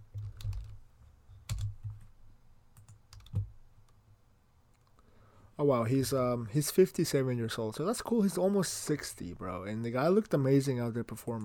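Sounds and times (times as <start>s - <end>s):
typing on a computer keyboard: 0.1s - 0.8s, 1.5s - 2.1s, 2.8s - 3.5s
speech: 5.6s - 11.4s.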